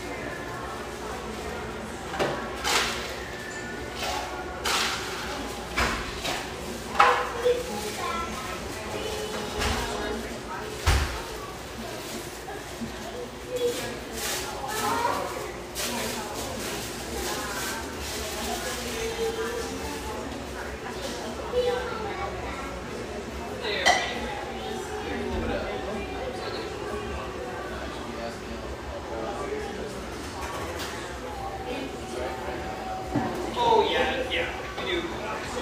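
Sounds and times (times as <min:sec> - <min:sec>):
café chatter of overlapping voices: 0:00.0 - 0:35.5
dishes clinking and clattering in a café: 0:23.8 - 0:24.2.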